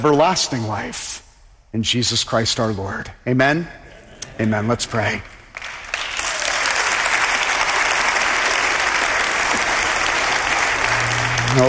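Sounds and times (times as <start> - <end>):
speech: 0.0 - 5.3
audience applauding: 5.5 - 11.6.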